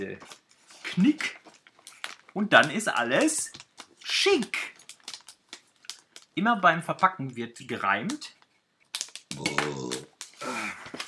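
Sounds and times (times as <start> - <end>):
speech: 0.0 - 0.4, 1.0 - 1.4, 2.4 - 4.7, 6.4 - 8.4
burp: 9.3 - 10.1.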